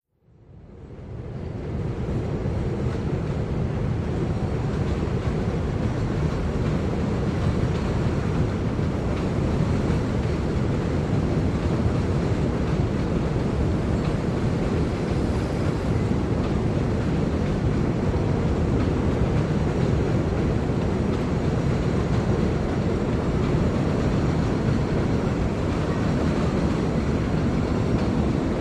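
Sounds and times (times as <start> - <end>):
elevated train passing overhead: 0.3 - 28.5.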